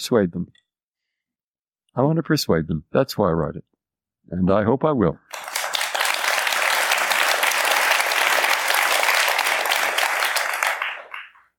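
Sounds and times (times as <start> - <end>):
speech: 0.0 - 0.6, 2.0 - 5.3
audience applause: 5.3 - 11.5.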